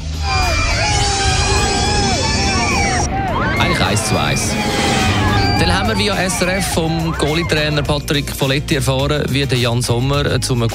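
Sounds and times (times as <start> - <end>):
loud roaring crowd: 0.0 - 8.3
electric Formula E race car passing: 0.5 - 7.8
speech: 4.1 - 4.9, 5.6 - 10.7.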